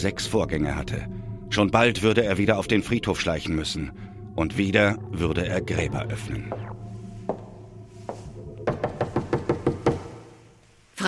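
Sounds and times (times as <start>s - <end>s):
speech: 0.0s - 6.8s
banging on a door: 8.6s - 10.3s.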